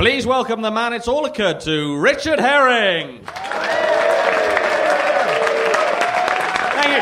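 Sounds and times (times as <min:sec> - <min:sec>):
speech: 0:00.1 - 0:03.7
audience applause: 0:03.3 - 0:07.0.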